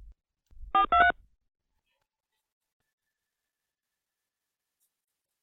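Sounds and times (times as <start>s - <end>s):
touch-tone keypad beeps entering a phone number: 0.8s - 1.1s.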